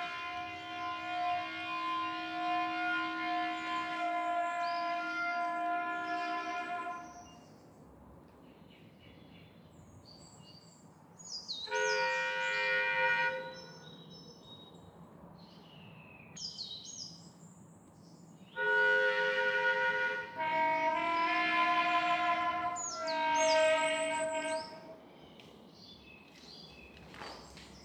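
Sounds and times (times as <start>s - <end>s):
forest dawn ambience: 0.0s - 18.8s, 19.8s - 27.8s.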